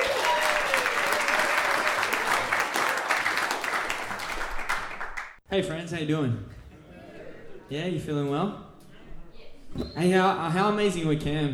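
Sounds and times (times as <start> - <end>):
audience round of applause: 0.0 - 5.4
speech: 5.5 - 6.6, 7.7 - 8.7, 9.7 - 11.5.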